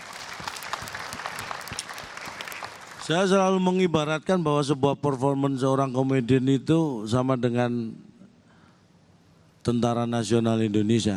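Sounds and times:
applause for a comedian at a stand-up comedy event: 0.0s - 3.4s
speech: 3.1s - 8.0s, 9.6s - 11.1s.

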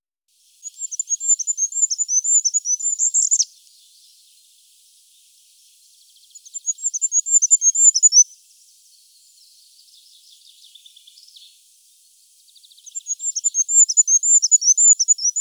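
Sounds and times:
goldcrest song: 0.3s - 15.3s.

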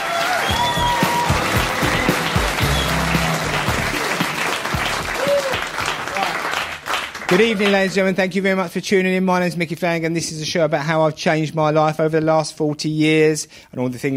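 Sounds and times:
audience applause welcoming a stand-up comedian onto the stage: 0.0s - 8.2s
speech: 7.3s - 14.1s.

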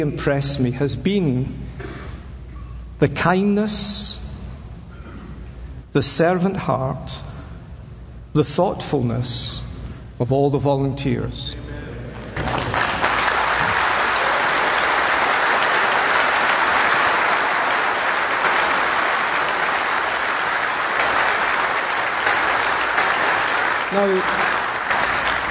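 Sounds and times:
speech: 0.0s - 2.0s, 3.0s - 4.2s, 6.0s - 7.3s, 8.4s - 9.6s, 10.2s - 11.6s, 24.0s - 24.4s
audience applause: 12.2s - 25.4s.

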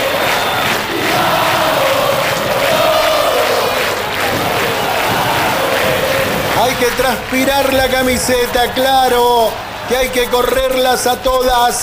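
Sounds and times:
football supporters chanting and shouting in a stadium: 0.0s - 8.3s
speech: 6.8s - 11.8s.

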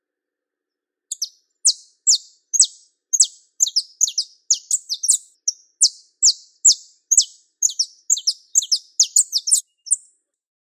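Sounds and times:
Belgian canary giving rapid piercing chirps: 1.1s - 10.2s.

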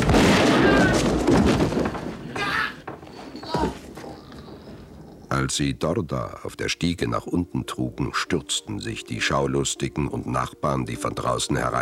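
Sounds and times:
sharp gunshots: 0.0s - 1.9s
loud crackling gunfire: 0.0s - 2.4s
speech: 5.4s - 11.8s.

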